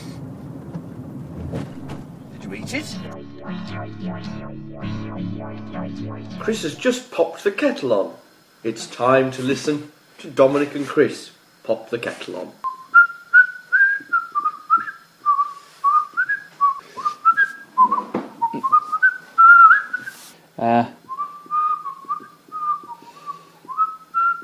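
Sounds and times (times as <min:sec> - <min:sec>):
person whistling a bouncy theme tune: 0:01.7 - 0:06.8, 0:12.7 - 0:20.1, 0:21.1 - 0:24.4
speech: 0:02.5 - 0:12.6.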